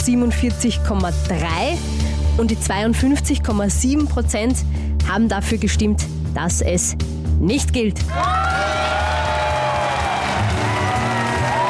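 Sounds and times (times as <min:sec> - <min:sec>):
speech: 0:00.0 - 0:08.6
applause and cheering: 0:08.1 - 0:11.6.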